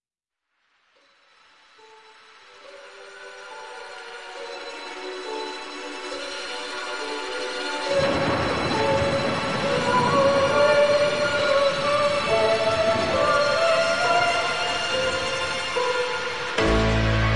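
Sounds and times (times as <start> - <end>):
rain falling: 7.2 - 17.2.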